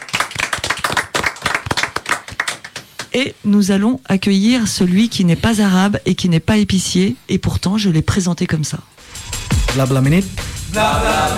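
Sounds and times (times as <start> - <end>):
audience clapping: 0.0 - 3.1
speech: 3.1 - 11.3.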